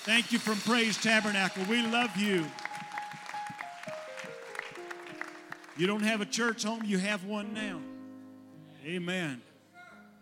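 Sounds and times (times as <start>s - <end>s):
speech: 0.0s - 2.7s, 5.8s - 7.9s, 8.8s - 9.5s
audience applause: 0.0s - 6.9s
held organ notes stepping downward: 0.0s - 9.6s.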